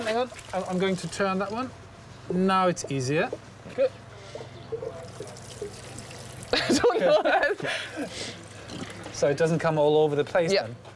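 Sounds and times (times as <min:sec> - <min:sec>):
water poured from a watering can into a balcony plant box: 0:00.0 - 0:01.7, 0:04.6 - 0:06.8
speech: 0:00.1 - 0:04.0, 0:06.5 - 0:08.4, 0:09.2 - 0:10.9
laughter: 0:06.5 - 0:08.3.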